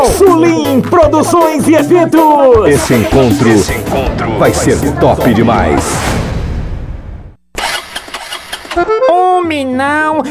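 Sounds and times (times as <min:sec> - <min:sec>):
speech: 0:00.1 - 0:06.2, 0:08.8 - 0:10.2
troublesome motorcycle engine failing to start: 0:07.6 - 0:08.9.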